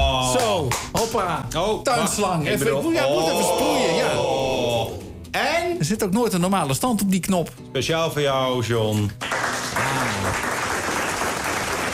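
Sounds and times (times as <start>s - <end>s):
speech: 0.3s - 10.4s
crowd applause: 9.2s - 11.9s.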